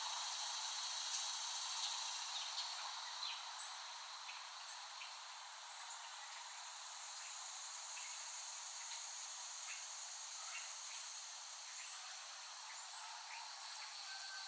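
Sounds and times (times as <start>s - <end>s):
cicadas humming: 0.0s - 14.4s.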